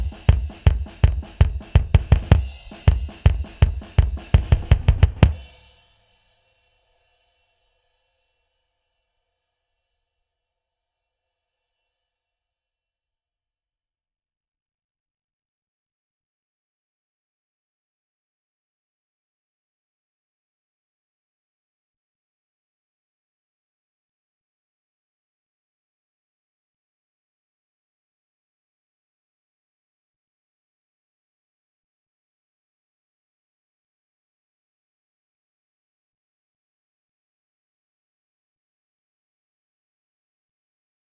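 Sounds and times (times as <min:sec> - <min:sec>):
bass drum: 0:00.0 - 0:05.5.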